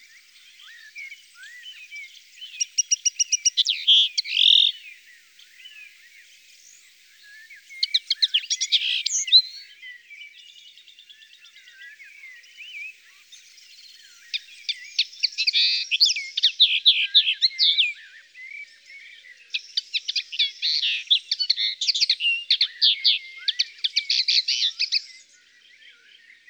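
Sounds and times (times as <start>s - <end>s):
Linotte melodieuse singing: 0.0s - 26.4s.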